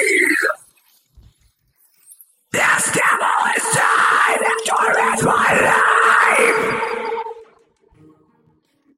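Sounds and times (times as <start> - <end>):
vocals: 0.0 - 0.6, 2.5 - 7.7.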